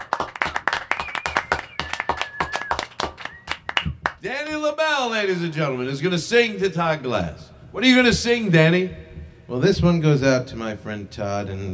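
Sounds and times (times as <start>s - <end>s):
small group clapping to fake a big studio crowd: 0.0s - 4.2s
thin high whistle-like tone: 0.9s - 3.8s
speech: 4.2s - 11.7s.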